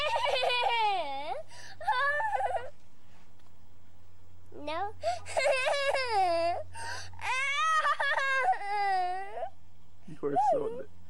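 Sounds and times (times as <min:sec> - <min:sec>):
three-year-old child whining in a home video: 0:00.0 - 0:02.7, 0:04.6 - 0:09.6, 0:10.2 - 0:10.9.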